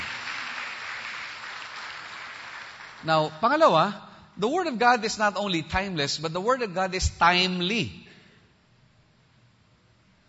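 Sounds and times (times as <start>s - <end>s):
congregation clapping to praise the Lord: 0.0s - 3.7s
speech: 3.0s - 8.0s.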